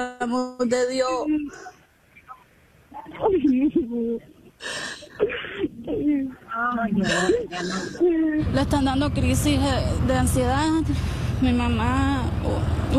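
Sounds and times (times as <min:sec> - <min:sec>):
speech: 0:00.0 - 0:01.8, 0:03.0 - 0:12.9
woman bursting into tears over a phone call: 0:03.2 - 0:08.5.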